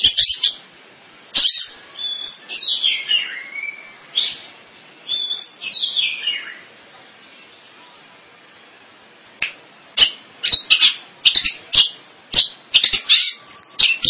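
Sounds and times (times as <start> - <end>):
bird song: 0.0 - 0.6, 1.4 - 6.8, 10.0 - 14.0.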